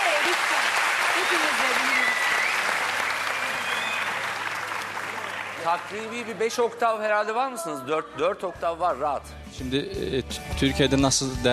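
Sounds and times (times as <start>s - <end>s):
audience applause: 0.0s - 6.6s
speech: 1.3s - 1.9s, 5.6s - 11.5s.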